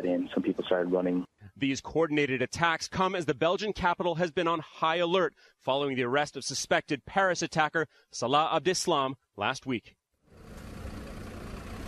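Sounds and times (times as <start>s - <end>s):
speech: 0.1s - 10.0s
buses pulling away with people inside: 10.3s - 11.8s.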